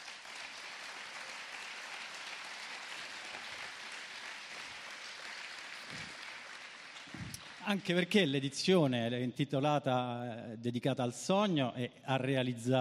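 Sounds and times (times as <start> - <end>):
audience applause: 0.0 - 8.2
speech: 7.6 - 12.7.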